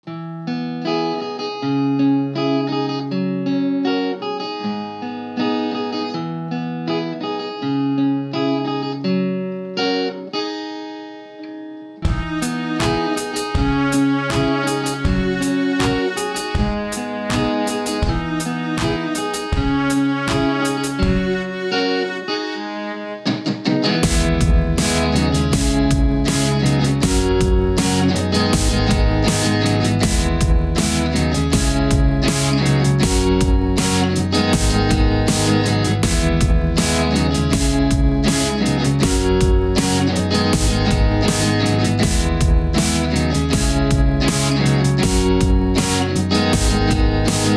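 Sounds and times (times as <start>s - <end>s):
guitar: 0.0s - 47.5s
violin: 12.0s - 47.5s.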